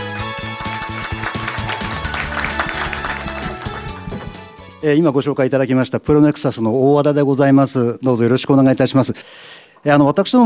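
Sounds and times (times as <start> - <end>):
low rhythmic musical backing: 0.0 - 5.4
audience applause: 0.2 - 4.5
speech: 4.8 - 10.4.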